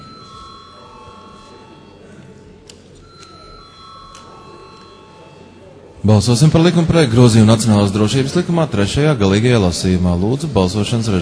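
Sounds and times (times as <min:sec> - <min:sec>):
Latvian Saeima parliament bell ringing before a vote: 0:00.0 - 0:08.4
speech: 0:06.0 - 0:11.2.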